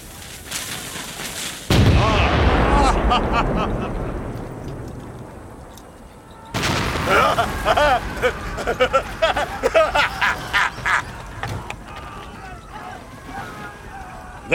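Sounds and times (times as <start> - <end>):
crackling, crashing impacts and debris: 0.0 - 14.5
heavy cannon volley fired at barracks: 1.7 - 11.9
laughter: 2.0 - 4.1, 7.0 - 14.5
faint voices: 5.9 - 14.5.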